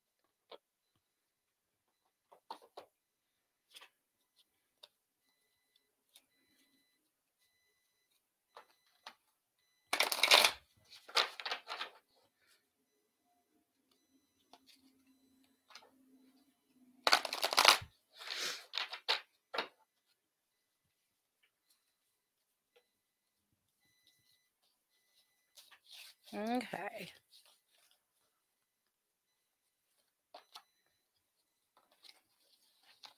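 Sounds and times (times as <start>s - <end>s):
deck of cards shuffled for a card reading: 10.0s - 11.9s, 17.0s - 19.7s
speech: 26.3s - 27.2s.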